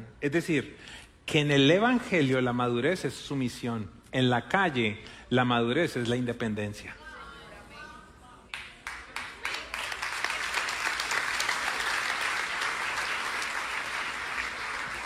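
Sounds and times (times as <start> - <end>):
speech: 0.2 - 7.0
audience applause: 8.8 - 15.0.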